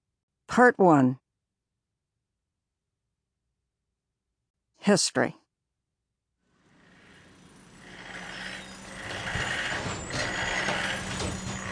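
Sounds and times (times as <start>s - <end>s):
speech: 0.6s - 1.2s, 4.8s - 5.4s
heavy machinery engine running: 6.6s - 11.6s.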